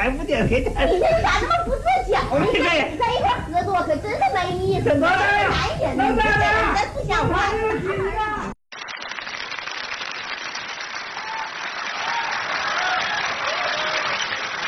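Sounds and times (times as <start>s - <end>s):
speech: 0.0s - 8.5s
audience applause: 8.7s - 14.6s.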